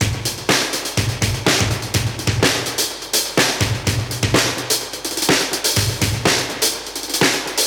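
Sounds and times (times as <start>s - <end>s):
classic drum breaks at 125 BPM: 0.0s - 7.6s.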